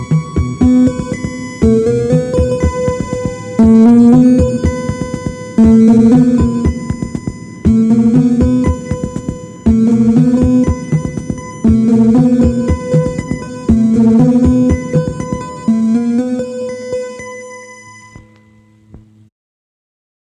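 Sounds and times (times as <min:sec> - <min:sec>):
elated lofi synthpop music: 0:00.0 - 0:17.6.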